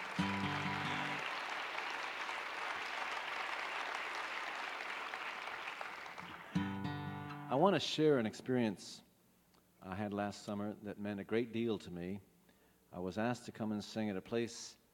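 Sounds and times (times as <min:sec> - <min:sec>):
audience applause: 0:00.0 - 0:07.0
speech: 0:07.6 - 0:09.1, 0:09.9 - 0:12.3, 0:12.9 - 0:14.8.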